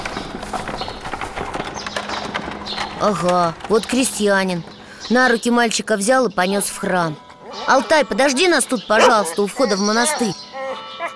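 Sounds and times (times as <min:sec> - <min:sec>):
horse hooves of a horse-drawn cart at Rila Monastery: 0:00.0 - 0:05.1
speech: 0:03.0 - 0:10.4.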